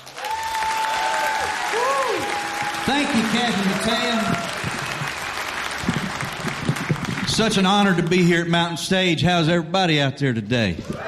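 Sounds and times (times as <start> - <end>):
audience applauding a returning performer on a live music stage: 0.0 - 8.4
speech: 3.1 - 4.6, 7.4 - 11.0.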